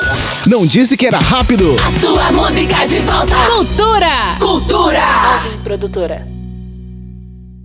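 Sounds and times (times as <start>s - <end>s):
volta break beat: 0.3s - 5.1s.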